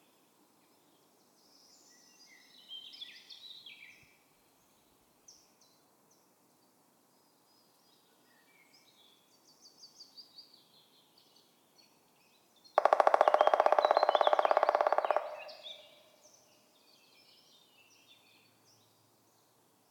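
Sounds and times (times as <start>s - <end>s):
black woodpecker drumming: 12.8s - 16.1s.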